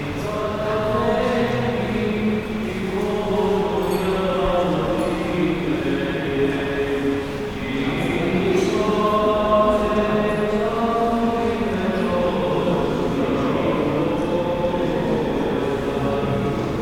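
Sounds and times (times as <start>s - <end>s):
Orthodox church ambience after mass in Romania: 0.0s - 16.8s.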